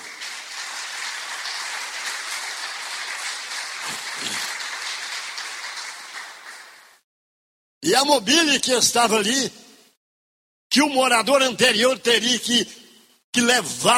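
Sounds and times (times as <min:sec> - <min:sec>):
applause: 0:00.0 - 0:07.0
speech: 0:07.9 - 0:09.6, 0:10.8 - 0:13.9.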